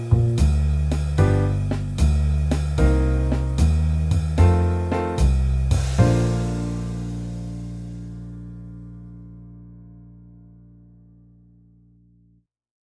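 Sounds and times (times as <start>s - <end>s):
slow blues jazz on guitar: 0.0s - 7.8s.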